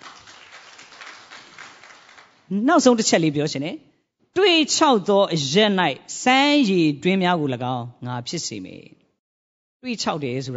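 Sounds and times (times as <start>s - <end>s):
congregation clapping hands in praise during a church service: 0.0s - 2.5s
speech: 2.5s - 9.0s, 9.8s - 10.5s.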